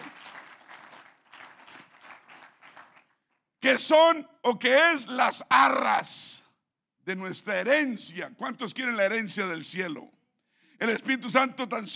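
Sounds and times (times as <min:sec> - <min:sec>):
audience applause: 0:00.0 - 0:03.2
speech: 0:03.6 - 0:06.4, 0:07.1 - 0:10.2, 0:10.8 - 0:11.9.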